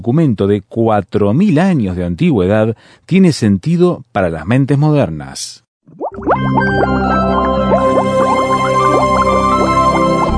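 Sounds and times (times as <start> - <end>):
speech: 0.0 - 8.3
liquid bubbling in a test tube: 5.8 - 10.0.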